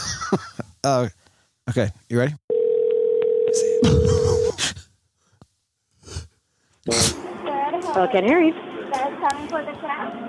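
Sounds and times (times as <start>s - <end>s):
speech: 0.3s - 2.4s, 3.8s - 4.9s, 6.9s - 7.1s, 7.9s - 10.2s
telephone dial tone: 2.5s - 3.8s.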